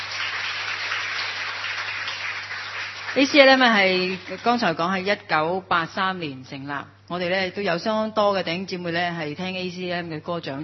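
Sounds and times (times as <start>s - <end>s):
crowd applause: 0.0s - 4.4s
low electrical hum: 0.0s - 10.6s
speech: 3.1s - 10.6s.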